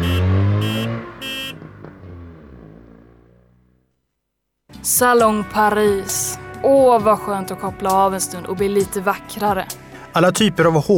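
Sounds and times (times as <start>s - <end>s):
car horn toots: 0.0s - 2.7s
car engine driving off to the garage: 0.0s - 4.1s
speech: 4.8s - 10.9s.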